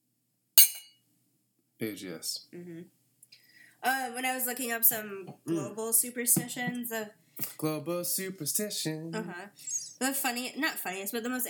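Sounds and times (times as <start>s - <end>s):
glasses clinking in a toast: 0.6s - 0.9s
speech: 1.8s - 3.0s, 3.8s - 11.4s.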